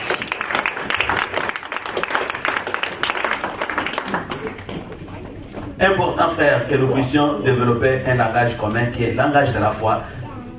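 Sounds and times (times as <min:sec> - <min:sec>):
audience applauding: 0:00.0 - 0:05.0
speech: 0:05.8 - 0:10.2.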